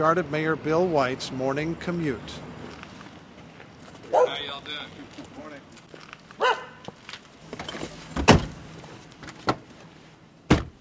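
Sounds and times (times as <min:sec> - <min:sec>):
speech: 0:00.0 - 0:02.5
car door opening and shutting: 0:07.6 - 0:08.6, 0:10.4 - 0:10.7.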